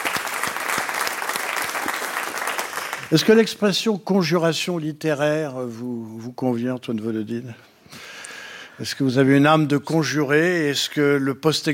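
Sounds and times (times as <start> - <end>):
live studio audience applause at a French literary show recording: 0.0 - 3.2
speech: 3.1 - 7.7, 8.8 - 11.7.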